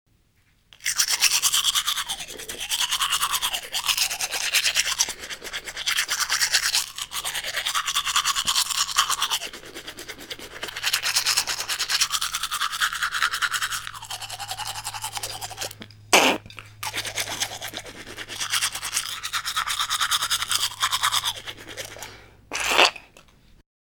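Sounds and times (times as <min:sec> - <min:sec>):
brushing teeth: 0:00.8 - 0:23.4.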